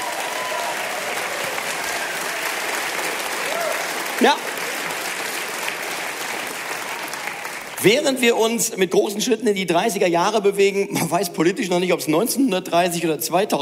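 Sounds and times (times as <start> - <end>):
audience applause: 0.0 - 8.6
speech: 4.2 - 4.5, 7.8 - 13.6.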